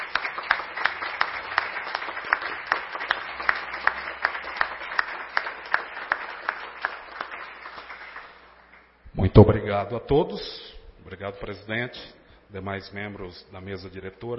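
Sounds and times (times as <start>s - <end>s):
audience applause: 0.0s - 8.5s
speech: 9.2s - 14.3s.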